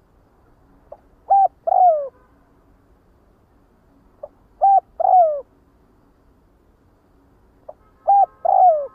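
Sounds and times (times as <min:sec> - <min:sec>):
spotted dove cooing: 0:01.2 - 0:02.1, 0:04.2 - 0:05.5, 0:08.0 - 0:08.9.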